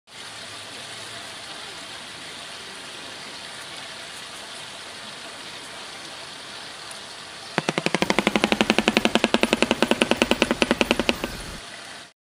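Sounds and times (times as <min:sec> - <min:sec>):
bird sound: 0:07.6 - 0:11.6.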